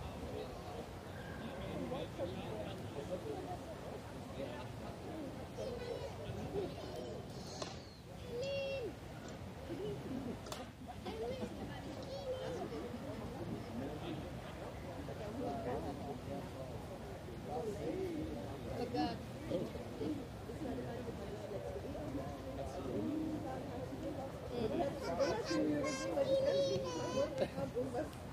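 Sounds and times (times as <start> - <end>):
murmur of many voices in Munich's Englischer Garten: 0.0 - 28.3.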